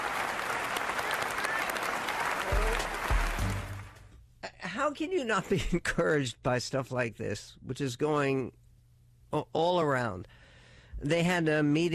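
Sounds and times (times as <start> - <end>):
large crowd standing applause: 0.0 - 4.1
speech: 4.9 - 8.6, 9.3 - 10.4, 11.0 - 11.9.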